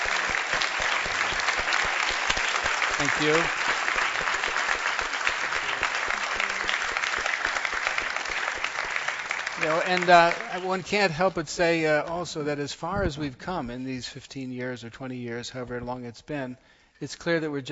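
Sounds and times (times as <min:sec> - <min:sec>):
audience applause: 0:00.0 - 0:11.1
speech: 0:03.0 - 0:03.8, 0:09.6 - 0:17.7.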